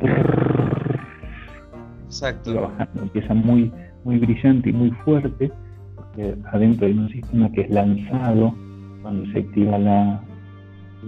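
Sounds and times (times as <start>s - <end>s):
voice imitating watch cricket alarm buzz: 0.0s - 1.5s
speech: 2.2s - 5.6s, 6.2s - 10.3s.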